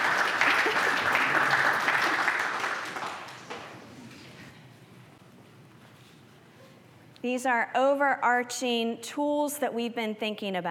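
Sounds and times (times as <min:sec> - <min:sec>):
crowd applauding: 0:00.0 - 0:03.6
speech: 0:07.2 - 0:10.7.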